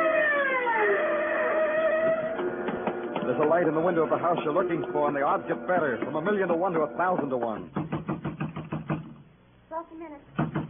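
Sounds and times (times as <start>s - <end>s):
police siren wailing through city: 0.0s - 2.7s
speech: 3.4s - 7.9s, 9.8s - 10.6s.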